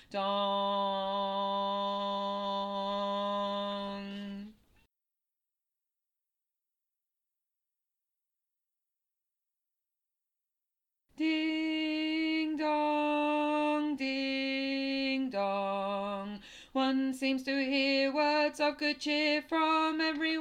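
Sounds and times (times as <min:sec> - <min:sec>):
tenor voice singing a carol: 0:00.0 - 0:04.6, 0:11.2 - 0:20.3.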